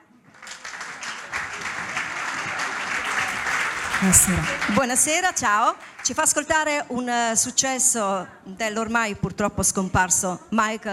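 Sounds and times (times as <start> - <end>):
crowd applause: 0.3 - 6.2
speech: 4.0 - 10.9.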